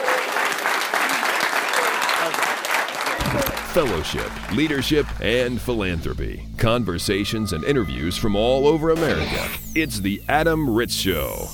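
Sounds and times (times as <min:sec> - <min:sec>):
round of applause: 0:00.0 - 0:05.8
speech: 0:03.7 - 0:11.5.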